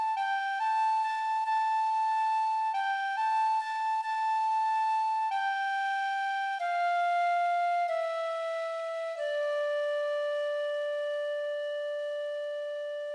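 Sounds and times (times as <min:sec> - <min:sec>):
flute: 0:00.0 - 0:13.1.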